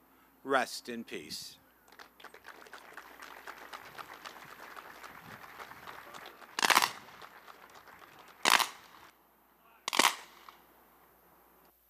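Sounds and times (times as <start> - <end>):
speech: 0.4 - 1.6
shuffling and murmur at a memorial ceremony: 1.4 - 8.5
rifle volleys in a memorial ceremony salute: 6.6 - 7.0, 8.4 - 9.1, 9.9 - 10.6.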